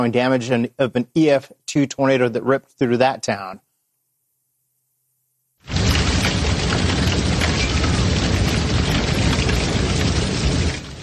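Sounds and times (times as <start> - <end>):
speech: 0.0 - 3.6
hail and heavy rain pounding down in a thunderstorm: 5.7 - 11.0.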